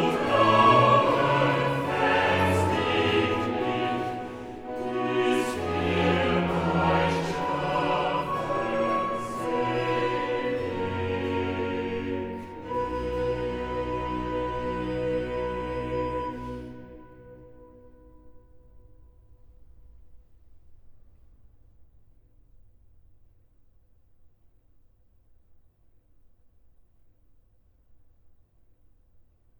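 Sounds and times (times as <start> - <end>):
choir singing cantatas: 0.0 - 17.6.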